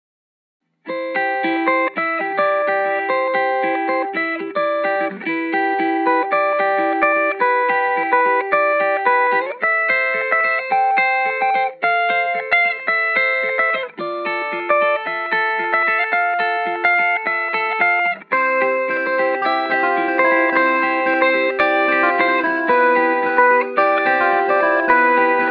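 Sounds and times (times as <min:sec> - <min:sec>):
sunny day guitar: 0:00.7 - 0:25.4.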